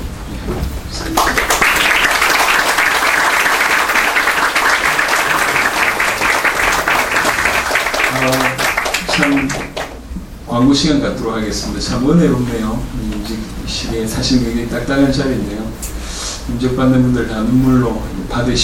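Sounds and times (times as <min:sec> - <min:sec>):
speech: 0:00.5 - 0:01.5, 0:10.6 - 0:18.6
congregation applauding at a church ordination ceremony: 0:01.0 - 0:10.1.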